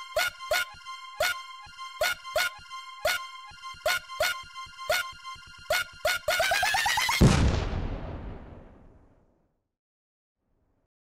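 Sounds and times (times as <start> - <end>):
funk music: 0.0 - 7.3.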